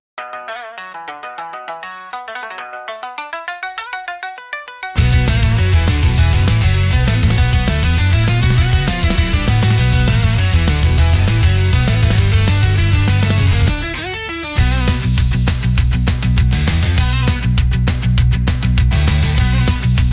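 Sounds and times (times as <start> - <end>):
intense Japanese rock music: 5.0 - 20.1.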